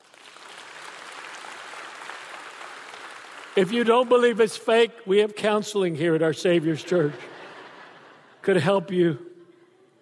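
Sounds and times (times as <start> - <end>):
audience clapping: 0.0 - 4.6
speech: 3.6 - 7.3, 8.4 - 9.3
laughter: 6.7 - 10.0.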